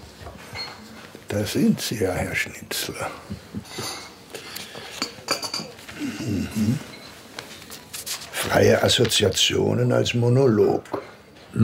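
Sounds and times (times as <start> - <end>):
speech: 1.3 - 4.1, 6.2 - 6.9, 8.4 - 11.6
cutlery clinking against dishes in a café: 3.7 - 5.8.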